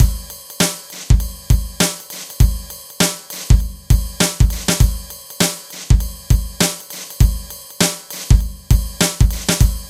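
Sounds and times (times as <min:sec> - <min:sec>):
funky jazz music: 0:00.0 - 0:09.8.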